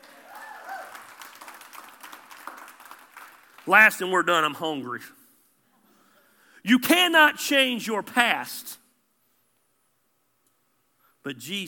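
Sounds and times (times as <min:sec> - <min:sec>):
audience applause: 0:00.0 - 0:03.8
speech: 0:03.6 - 0:05.2, 0:06.6 - 0:08.8, 0:11.2 - 0:11.6.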